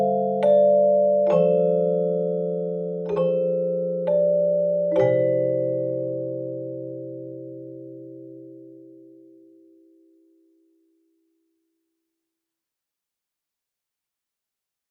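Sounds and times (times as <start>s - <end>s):
chime: 0.0s - 9.0s.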